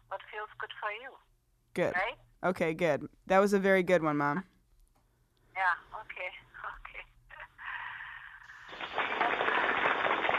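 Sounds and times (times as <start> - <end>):
speech: 0.4 - 4.5, 5.6 - 6.4
people clapping in the studio: 8.7 - 10.3.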